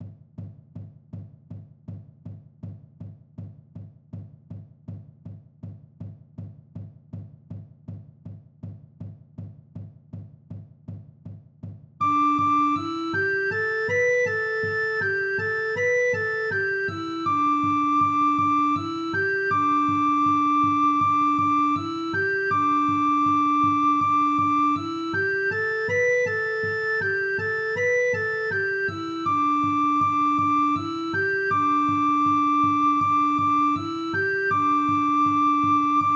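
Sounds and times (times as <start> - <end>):
song: 12.0 - 36.1.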